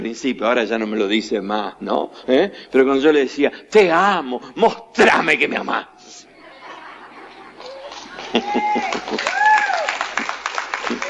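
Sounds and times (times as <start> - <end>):
speech: 0.0 - 6.2, 8.3 - 9.5, 10.9 - 11.0
laughter: 6.3 - 11.0
audience of mostly women applauding: 7.5 - 11.0.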